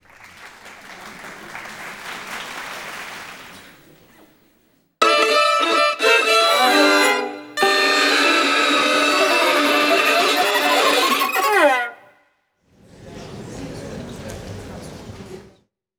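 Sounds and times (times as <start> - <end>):
violin playing: 5.0 - 12.2.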